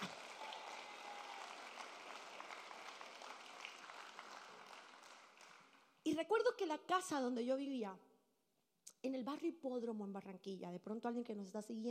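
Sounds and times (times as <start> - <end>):
audience applause: 0.0 - 6.0
speech: 6.1 - 8.1, 9.0 - 11.8.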